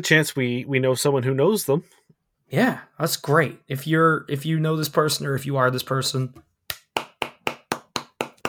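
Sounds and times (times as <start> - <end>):
speech: 0.0 - 6.5
hands clapping: 6.7 - 8.4.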